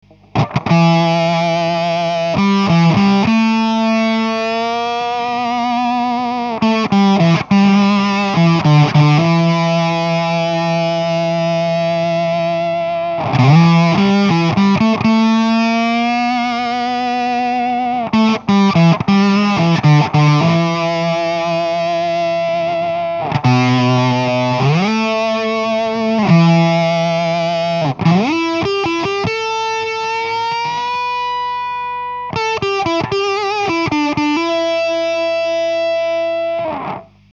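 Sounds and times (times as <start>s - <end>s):
Pearl octaver pedal octave-up effect: 0.0s - 37.2s.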